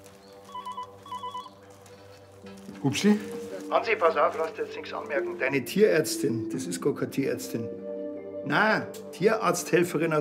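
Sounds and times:
telephone ringing in electronic bursts: 0.5 - 1.6
speech: 2.4 - 7.8, 8.4 - 10.2.

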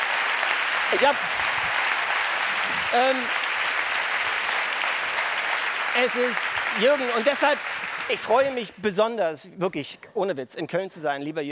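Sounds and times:
audience applause: 0.0 - 8.8
speech: 0.9 - 1.6, 2.7 - 3.4, 6.0 - 11.5.

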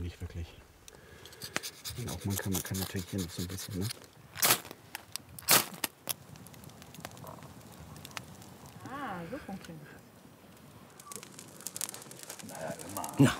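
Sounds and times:
campfire crackling: 0.8 - 13.3
speech: 2.0 - 4.1, 13.2 - 13.3.

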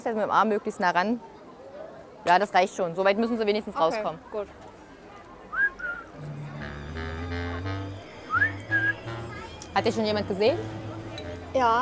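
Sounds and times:
speech: 0.0 - 1.3, 2.2 - 4.7, 9.8 - 10.8, 11.5 - 11.8
person whistling to attract attention: 5.5 - 7.5, 8.3 - 9.2.

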